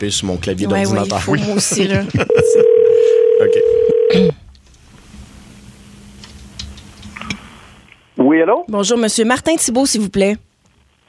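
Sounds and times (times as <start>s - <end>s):
speech: 0.0s - 4.4s, 8.3s - 10.5s
low steady hum: 0.0s - 10.6s
laughter: 1.0s - 3.2s
telephone number being dialed: 2.3s - 4.3s.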